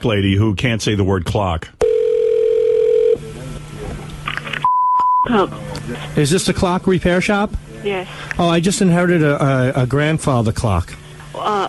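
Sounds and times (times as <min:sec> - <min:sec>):
speech: 0:00.0 - 0:01.8, 0:05.2 - 0:11.6
phone line noise: 0:01.8 - 0:03.2
telephone ringing tone over a phone line: 0:01.8 - 0:03.2
quick beeps: 0:04.6 - 0:05.3.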